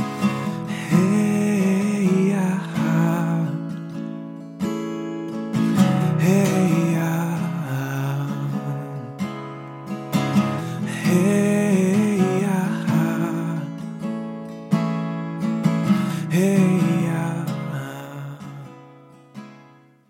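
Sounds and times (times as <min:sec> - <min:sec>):
person singing: 0:00.0 - 0:03.8, 0:05.9 - 0:09.2, 0:10.8 - 0:13.8, 0:16.1 - 0:18.7
guitar: 0:00.0 - 0:20.0.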